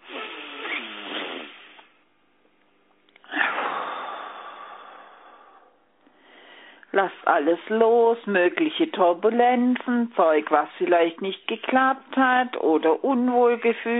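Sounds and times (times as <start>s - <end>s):
person breathing in and out during a guided breathing exercise: 3.2s - 6.9s
speech: 7.0s - 13.9s.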